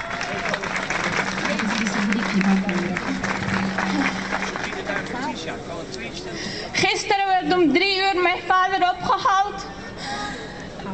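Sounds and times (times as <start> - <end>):
audience applause: 0.0 - 5.8
speech: 2.4 - 3.4, 5.4 - 9.8.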